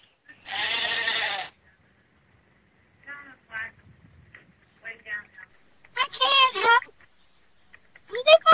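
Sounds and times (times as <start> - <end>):
sheep bleating: 0.4 - 1.6, 6.0 - 6.8.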